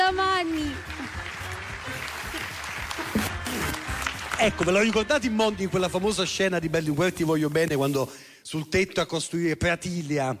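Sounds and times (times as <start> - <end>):
audience applause: 0.0 - 5.4
speech: 4.4 - 10.3.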